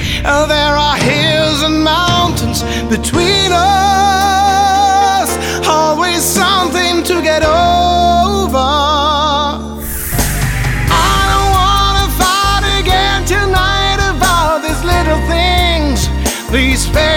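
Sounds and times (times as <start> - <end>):
person singing in a studio and live: 0.1 - 10.1, 10.7 - 17.1.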